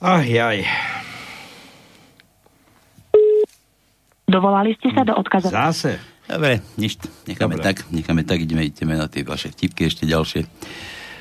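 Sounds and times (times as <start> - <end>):
speech: 0.0 - 0.9, 4.4 - 11.0
telephone busy signal: 3.2 - 3.5.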